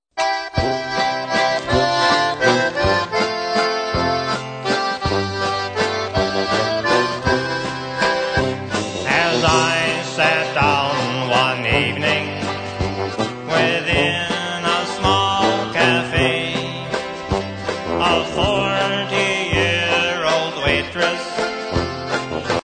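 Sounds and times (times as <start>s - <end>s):
waltz music: 0.2s - 22.6s.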